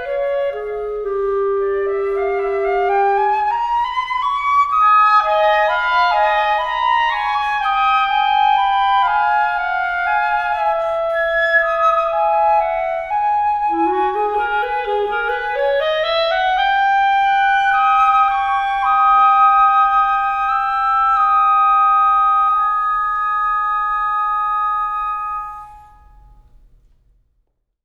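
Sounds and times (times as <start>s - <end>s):
clarinet playing a moderato duo: 0.0s - 26.7s
flute playing a moderato duo: 0.0s - 26.7s.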